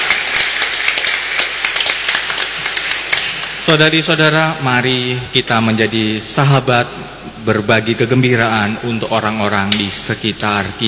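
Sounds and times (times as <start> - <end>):
audience applause in church: 0.0 - 3.6
speech: 3.7 - 10.8.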